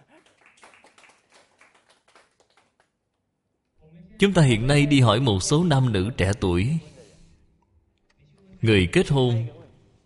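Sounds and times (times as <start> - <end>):
audience applause: 0.0 - 2.9
speech: 4.2 - 6.9, 8.6 - 9.6.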